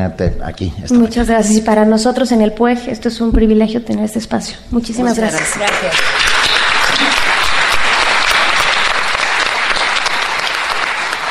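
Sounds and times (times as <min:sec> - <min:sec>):
speech: 0:00.0 - 0:06.4
audience applause: 0:05.2 - 0:11.2.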